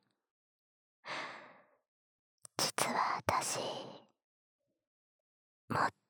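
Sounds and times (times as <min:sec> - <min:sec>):
whispering: 0:02.6 - 0:04.0.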